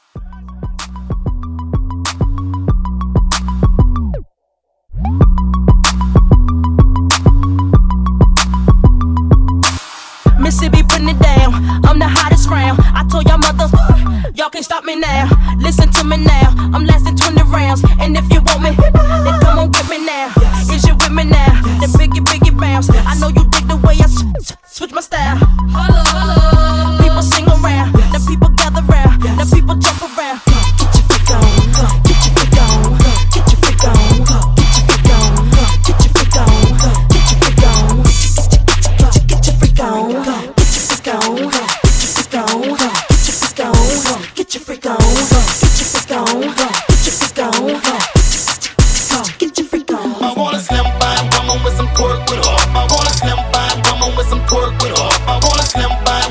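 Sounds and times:
twerk hybrid mashup music: 0.0 - 4.2, 5.0 - 56.2.

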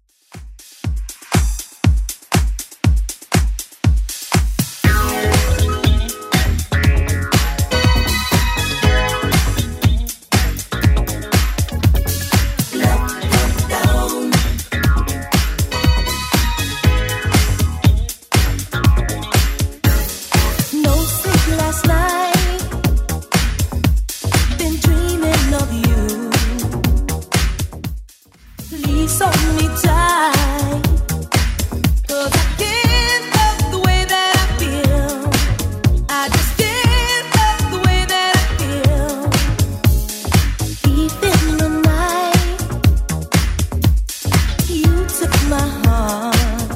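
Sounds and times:
1980s club music at 120 BPM: 0.2 - 46.7.

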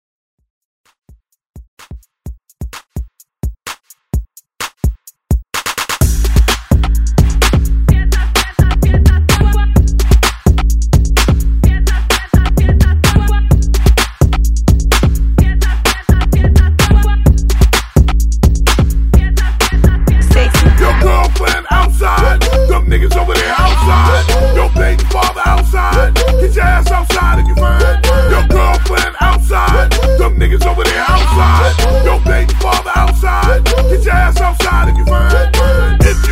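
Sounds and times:
Redrum drum machine beat: 0.9 - 36.3.

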